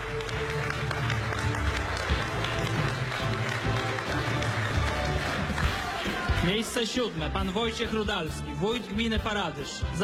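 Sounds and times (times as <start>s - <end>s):
audience applause: 0.0s - 7.4s
speech: 6.4s - 10.0s.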